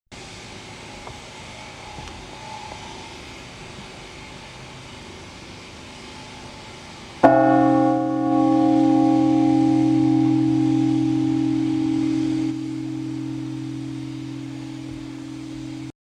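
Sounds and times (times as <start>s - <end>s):
bell ringing: 7.3s - 15.9s.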